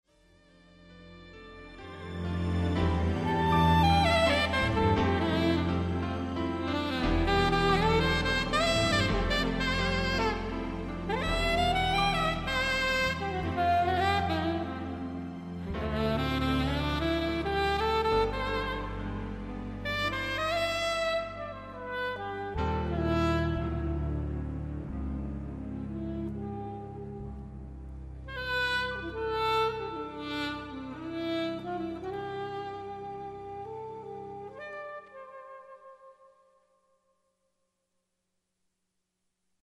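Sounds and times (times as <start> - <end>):
saxophone: 0.4 - 36.9.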